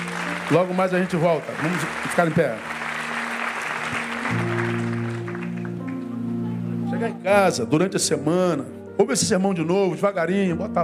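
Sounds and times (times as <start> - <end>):
crowd audience applauding: 0.0 - 6.3
speech: 0.5 - 2.8, 7.0 - 10.8.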